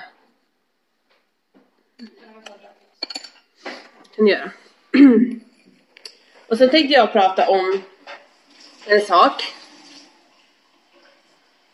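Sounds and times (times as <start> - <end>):
glass of water clinking: 2.4 - 3.5
speech: 4.2 - 5.4, 6.5 - 7.9, 8.8 - 9.5.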